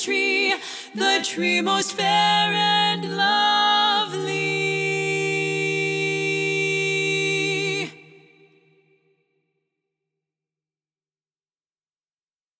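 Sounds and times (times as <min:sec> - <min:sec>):
lead vocal singing a Christmas carol for SSAA choir: 0:00.0 - 0:08.6.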